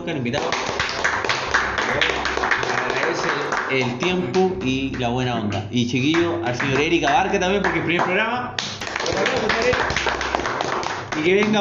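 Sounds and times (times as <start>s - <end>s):
speech: 0.0s - 0.7s, 1.9s - 10.1s, 11.2s - 11.5s
applause: 0.4s - 4.2s, 6.2s - 11.5s.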